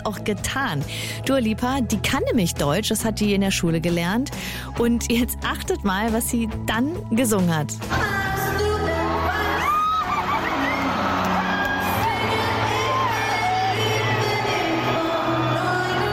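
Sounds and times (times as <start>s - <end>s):
speech: 0.0s - 8.2s
concert fans cheering wildly: 8.6s - 16.1s.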